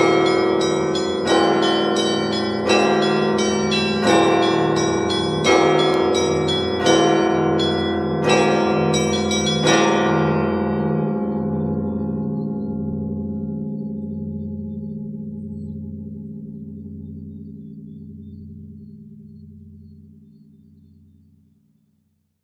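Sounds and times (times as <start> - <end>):
church bell ringing pattern: 0.0 - 13.4.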